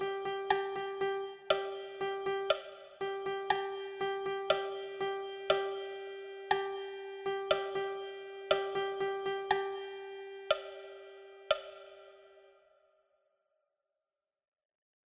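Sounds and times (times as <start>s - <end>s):
percussion: 0.0s - 10.9s, 11.5s - 12.0s.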